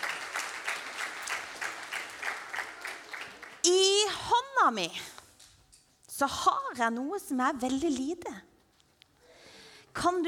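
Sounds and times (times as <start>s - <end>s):
audience applause: 0.0s - 3.6s
speech: 4.6s - 5.2s, 6.2s - 8.5s, 10.0s - 10.2s.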